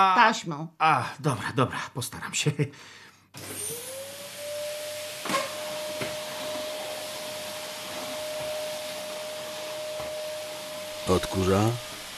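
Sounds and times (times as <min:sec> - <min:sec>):
speech: 0:00.0 - 0:03.8, 0:11.0 - 0:12.0
vacuum cleaner running: 0:03.4 - 0:12.1.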